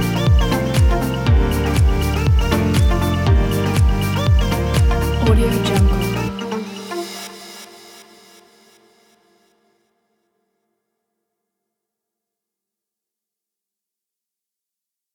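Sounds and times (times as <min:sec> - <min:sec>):
fashion ambient corporate music kit: 0:00.0 - 0:09.2.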